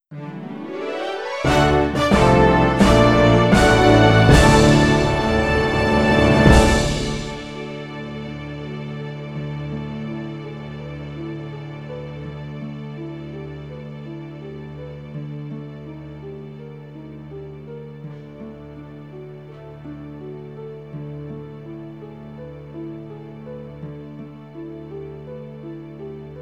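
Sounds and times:
boat game victory music: 0.5s - 7.9s.

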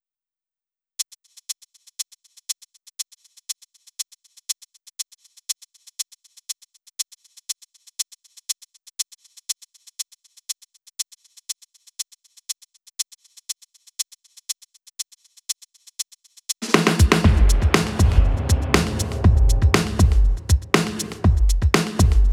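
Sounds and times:
drums at 120 BPM: 16.5s - 22.3s.

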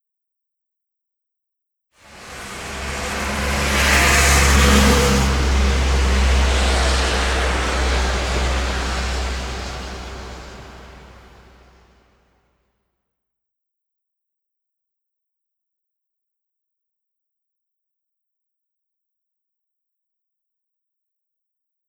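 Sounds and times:
Hooverdam truck: 2.0s - 11.8s.

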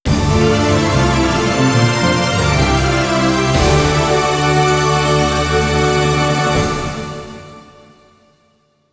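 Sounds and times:
stage complete jingle arrangement: 0.1s - 7.9s.

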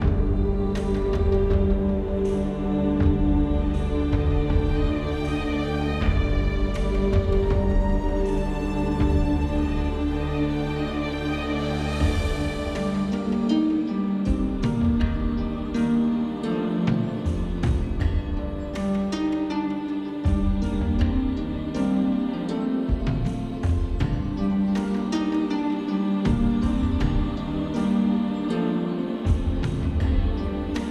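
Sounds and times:
dark forest ambience: 0.0s - 30.9s.

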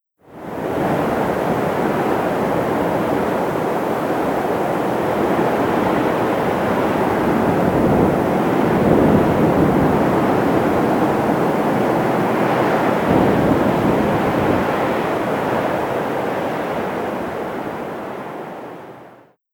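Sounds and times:
wind in Las Vegas: 0.2s - 19.3s.

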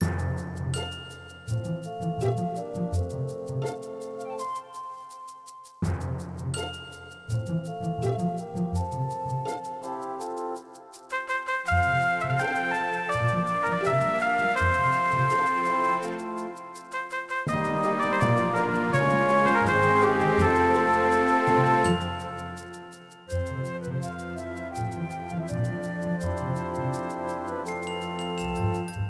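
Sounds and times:
music loop: 0.0s - 29.0s.

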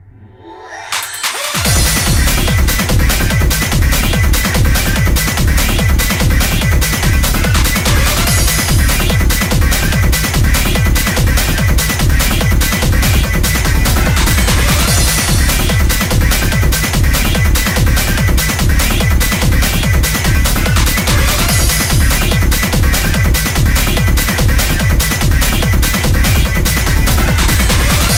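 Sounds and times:
techno music: 0.4s - 28.1s.

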